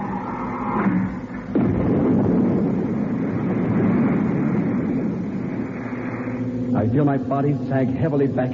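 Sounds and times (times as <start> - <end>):
low mechanical hum: 0.0 - 8.5
retro rocket engines firing: 0.0 - 8.5
speech: 6.8 - 8.5.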